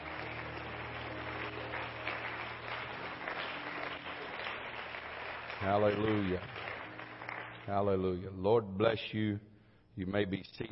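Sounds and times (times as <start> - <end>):
crowd of people clapping in a large room: 0.0 - 8.1
low sustained musical drone: 0.0 - 8.1
speech: 5.6 - 6.6, 7.7 - 10.7.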